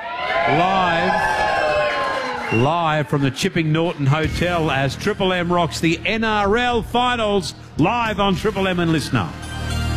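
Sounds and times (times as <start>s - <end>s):
crowd cheering and whooping at a live radio broadcast from the Chipping Norton Hotel: 0.0s - 3.6s
speech: 0.5s - 1.2s, 2.5s - 9.5s.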